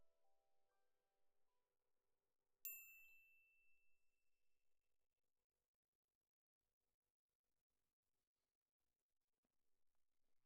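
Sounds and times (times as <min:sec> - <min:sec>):
glockenspiel: 0:02.7 - 0:04.0.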